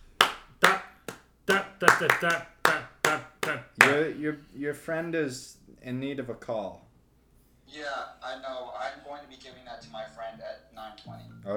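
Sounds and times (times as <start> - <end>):
hand clapping: 0.0 - 4.2
speech: 1.5 - 2.9, 3.5 - 6.9, 7.7 - 11.5.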